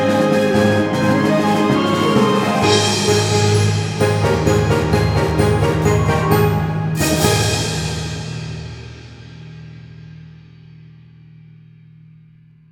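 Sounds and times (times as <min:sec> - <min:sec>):
orchestral music: 0:00.0 - 0:09.2.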